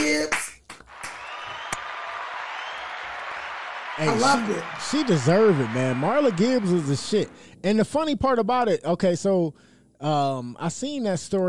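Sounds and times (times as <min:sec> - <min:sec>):
crowd applause: 0:00.9 - 0:07.5
speech: 0:04.0 - 0:11.4.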